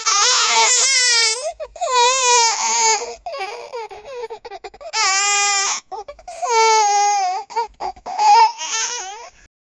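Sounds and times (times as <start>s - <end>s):
baby crying: 0.0s - 9.4s.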